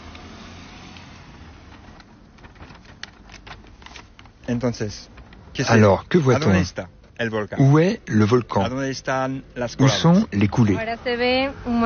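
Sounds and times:
new paper map being unfolded: 1.3s - 8.6s
speech: 4.5s - 11.8s.

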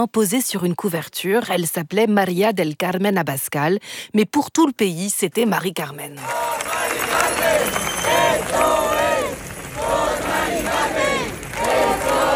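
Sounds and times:
speech: 0.0s - 6.7s
crowd chanting a woman's name: 6.2s - 12.3s.

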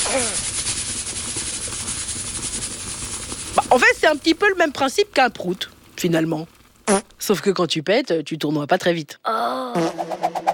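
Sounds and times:
steam escaping a pressure cooker: 0.0s - 6.0s
speech: 0.1s - 0.5s, 3.7s - 10.2s.

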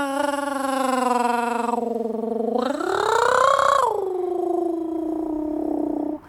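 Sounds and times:
person imitating a cat's purr in the throat: 0.0s - 6.2s.

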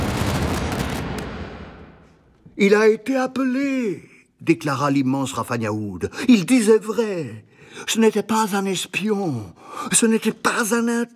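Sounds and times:
explosion sound effect: 0.0s - 2.4s
speech: 2.6s - 11.1s.

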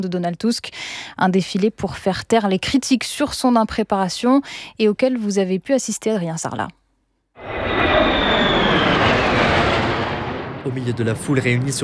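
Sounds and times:
speech: 0.0s - 6.8s, 10.6s - 11.8s
F-16 and F-35 fighter jets flying overhead: 7.4s - 11.8s.

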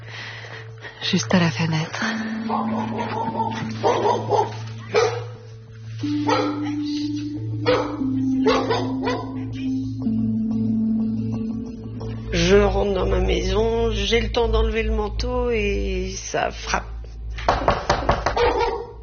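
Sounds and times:
low hum: 0.0s - 18.0s
speech: 1.1s - 5.1s, 6.0s - 9.3s, 12.5s - 16.9s
dog barking: 2.4s - 5.4s, 6.2s - 6.8s, 7.6s - 9.4s, 18.3s - 19.0s.

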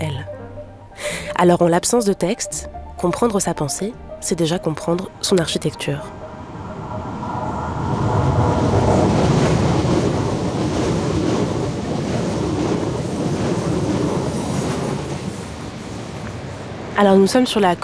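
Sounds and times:
speech: 1.4s - 6.2s, 17.0s - 17.8s
surf on the Côte d'Azur near Roquebrune-Cap-Martin: 5.7s - 17.8s.

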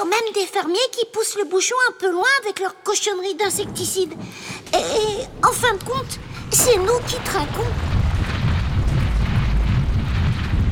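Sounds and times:
speech: 0.2s - 8.0s
mudslide blocking a cave entrance: 3.5s - 10.7s.

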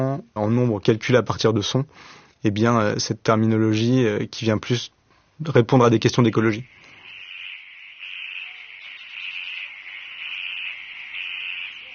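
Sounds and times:
speech: 0.0s - 6.8s
frogs calling around a pond at Coily Alpha after rain: 6.6s - 11.9s.

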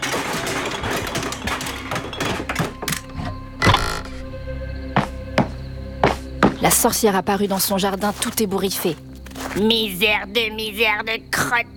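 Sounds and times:
shelf collapsing with a great crash: 0.0s - 4.4s
speech: 6.6s - 11.7s.

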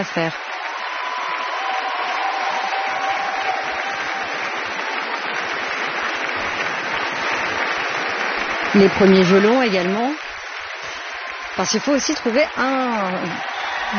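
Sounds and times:
speech: 0.0s - 0.5s, 8.7s - 10.2s, 11.6s - 13.9s
concert audience applause: 0.0s - 13.9s.

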